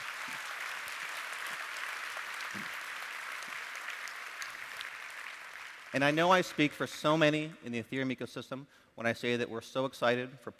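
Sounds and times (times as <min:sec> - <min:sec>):
audience applauding: 0:00.0 - 0:06.7
speech: 0:05.9 - 0:10.5.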